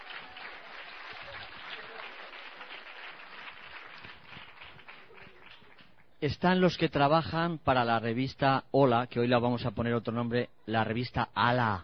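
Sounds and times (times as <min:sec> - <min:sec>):
audience applause: 0:00.0 - 0:05.9
speech: 0:06.2 - 0:11.8.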